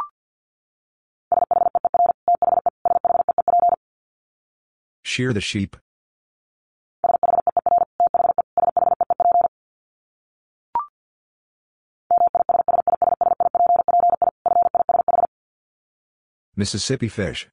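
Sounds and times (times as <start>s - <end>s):
fast Morse code beeps at 50 wpm: 1.3s - 3.8s, 7.0s - 9.5s, 12.1s - 15.3s
speech: 5.2s - 5.9s, 16.6s - 17.5s.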